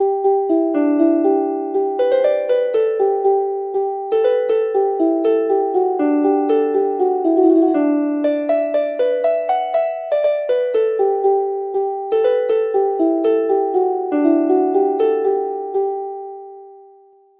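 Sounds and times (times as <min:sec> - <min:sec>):
harp: 0:00.0 - 0:17.2.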